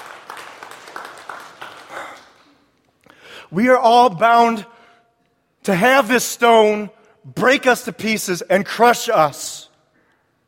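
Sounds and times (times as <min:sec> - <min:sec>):
audience applause: 0:00.0 - 0:02.6
speech: 0:03.5 - 0:04.7, 0:05.6 - 0:09.7.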